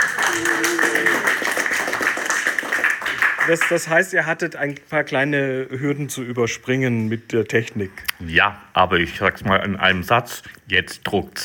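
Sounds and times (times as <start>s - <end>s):
crowd applause: 0.0s - 4.1s
speech: 3.5s - 11.4s.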